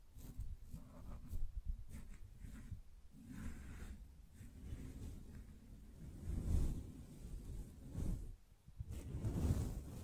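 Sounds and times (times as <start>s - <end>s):
gentle brushing strokes: 0.0s - 10.0s.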